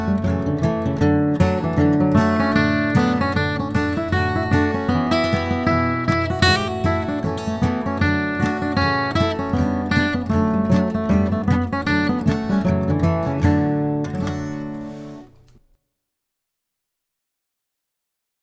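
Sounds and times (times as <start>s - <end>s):
bluegrass guitar playing a fiddle tune in C: 0.0s - 15.5s.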